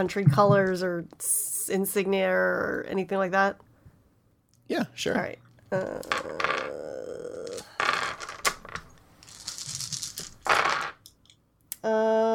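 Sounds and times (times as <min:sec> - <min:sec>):
speech: 0:00.0 - 0:03.7, 0:04.7 - 0:06.9, 0:11.8 - 0:12.3
handful of dice rattling across a surface: 0:07.4 - 0:11.2.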